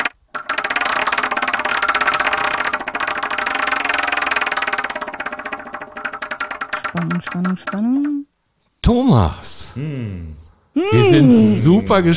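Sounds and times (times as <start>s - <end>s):
prize wheel spinning and rattling against its pointer: 0.0s - 8.2s
speech: 7.0s - 12.1s.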